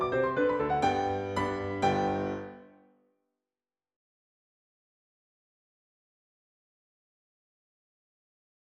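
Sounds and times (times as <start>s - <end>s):
polka piano: 0.0s - 2.8s.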